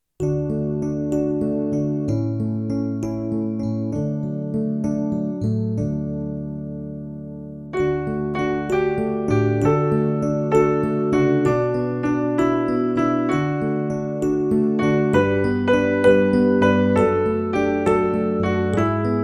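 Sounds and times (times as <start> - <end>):
instrumental Christmas music without vocals: 0.2 - 19.2.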